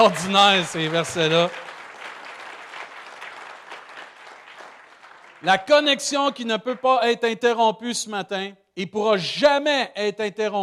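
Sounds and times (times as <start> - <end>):
speech: 0.0 - 1.7, 5.4 - 10.6
audience applause: 0.0 - 5.9.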